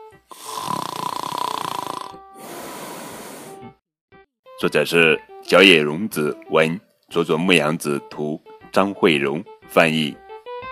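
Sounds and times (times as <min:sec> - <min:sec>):
loud snore: 0:00.3 - 0:03.8
speech: 0:04.6 - 0:10.2.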